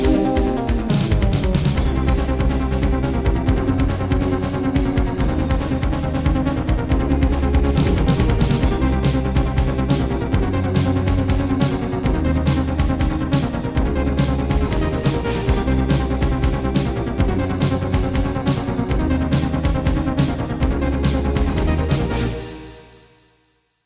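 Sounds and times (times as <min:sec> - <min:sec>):
video game music played on a Turtle Beach Rio: 0:00.0 - 0:23.1.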